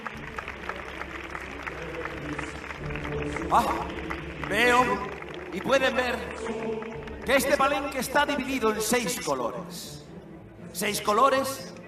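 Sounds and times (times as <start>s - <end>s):
crowd clapping: 0.0s - 9.4s
speech: 3.3s - 10.0s, 10.8s - 11.7s.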